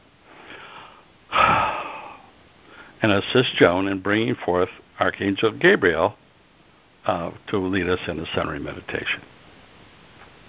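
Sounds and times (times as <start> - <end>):
group taking a big deep breath during a centering meditation: 0.3 - 3.0
speech: 3.0 - 6.2, 7.0 - 9.4.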